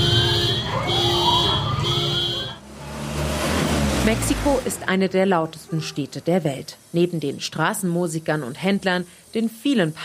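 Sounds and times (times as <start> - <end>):
earthquake warning siren: 0.0 - 2.6
speech: 4.1 - 10.0.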